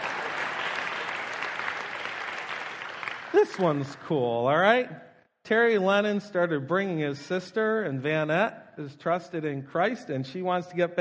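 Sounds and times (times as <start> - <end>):
room full of people applauding: 0.0 - 4.1
speech: 3.3 - 10.9.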